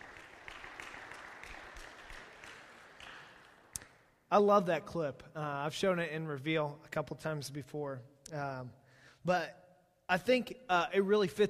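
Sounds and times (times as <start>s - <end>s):
audience applause: 0.0s - 3.7s
speech: 4.3s - 11.4s.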